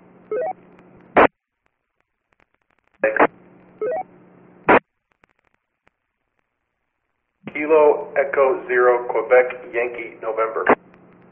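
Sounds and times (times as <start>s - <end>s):
static hiss: 0.0s - 11.3s
faint garbled radio transmission: 2.9s - 3.4s, 7.4s - 10.8s
speech: 7.7s - 11.3s.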